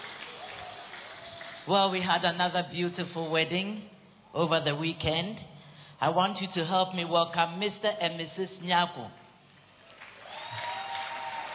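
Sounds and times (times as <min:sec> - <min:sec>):
audience applause welcoming a newly married couple: 0:00.0 - 0:01.7, 0:09.8 - 0:11.5
speech: 0:01.6 - 0:09.2.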